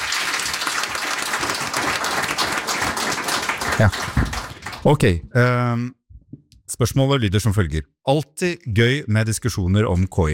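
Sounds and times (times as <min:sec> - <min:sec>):
applause: 0:00.0 - 0:05.0
speech: 0:03.8 - 0:06.0, 0:06.7 - 0:10.3.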